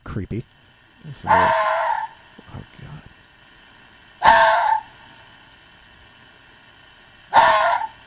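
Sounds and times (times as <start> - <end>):
speech: 0.2 - 1.7
fox screaming: 1.1 - 2.2, 4.2 - 4.9, 7.3 - 8.0.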